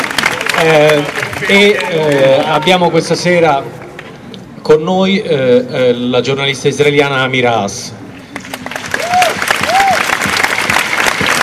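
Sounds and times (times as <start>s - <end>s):
audience clapping: 0.0s - 2.7s, 8.3s - 11.4s
speech: 0.6s - 3.8s, 4.6s - 8.0s.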